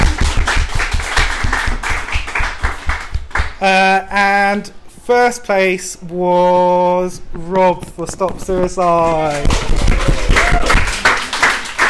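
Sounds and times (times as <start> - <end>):
audience applause: 0.0 - 3.6, 9.0 - 11.8
speech: 3.6 - 10.2.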